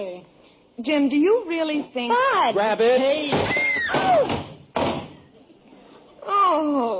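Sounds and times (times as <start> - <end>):
speech: 0.0 - 4.3
door with no doorknob pushed hard and falling off its hinges: 3.2 - 5.2.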